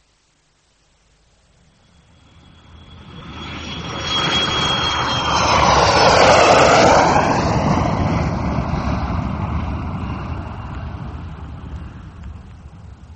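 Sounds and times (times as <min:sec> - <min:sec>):
aircraft engine roar of a plane coming in to land: 0:01.2 - 0:13.1.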